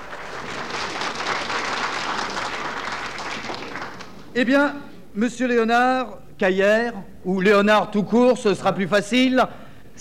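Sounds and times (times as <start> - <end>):
audience applause: 0.0 - 4.3
speech: 4.4 - 9.9.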